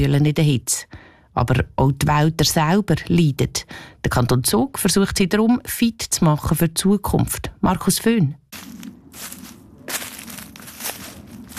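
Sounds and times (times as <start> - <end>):
speech: 0.0 - 9.4
footsteps walking through a forest on dry ground and leaves: 8.5 - 11.5.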